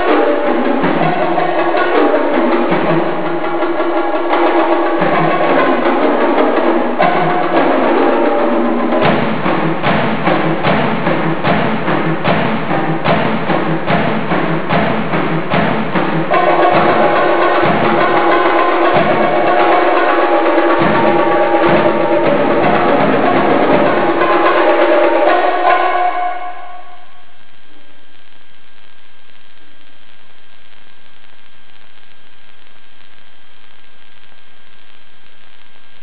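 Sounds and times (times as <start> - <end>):
percussionist playing at a concert in Tokyo: 0.0 - 27.2.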